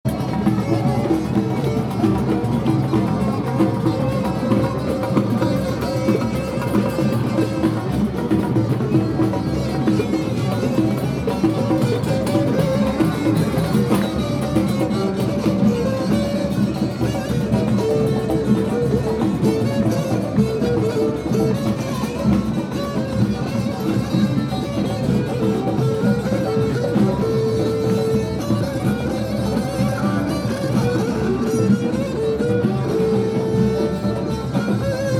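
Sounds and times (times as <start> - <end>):
street musicians playing in Jemaa el-Fnaa, Marrakech: 0.0 - 35.1.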